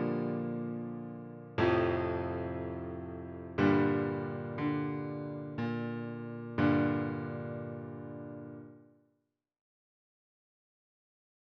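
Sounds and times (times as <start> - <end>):
piano cutscene music: 0.0 - 8.7.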